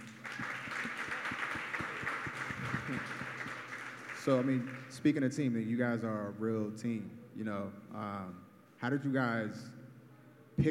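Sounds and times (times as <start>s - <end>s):
audience applause: 0.0s - 4.9s
speech: 4.2s - 9.8s.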